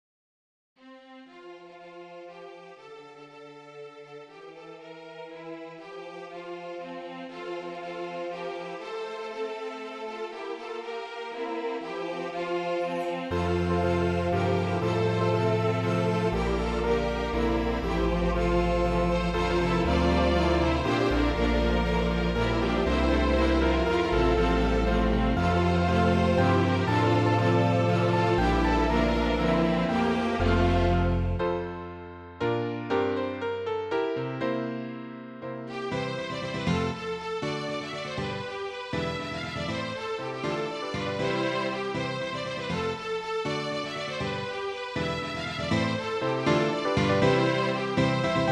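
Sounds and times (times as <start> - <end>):
piano: 5.8 - 48.4.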